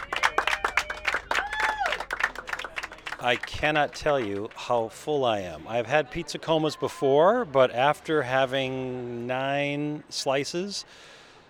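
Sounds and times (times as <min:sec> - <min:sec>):
round of applause: 0:00.0 - 0:04.7
speech: 0:03.2 - 0:11.2.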